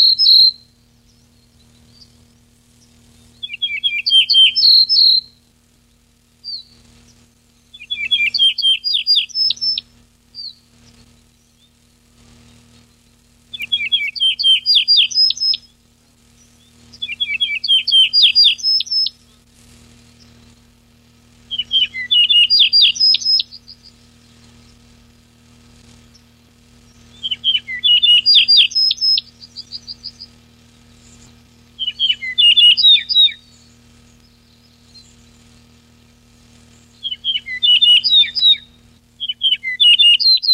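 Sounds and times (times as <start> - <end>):
yellow-breasted bunting singing whistled notes: 0.0 - 5.4, 6.4 - 11.8, 12.4 - 15.7, 16.4 - 19.3, 21.5 - 24.8, 26.1 - 35.7, 36.7 - 40.5.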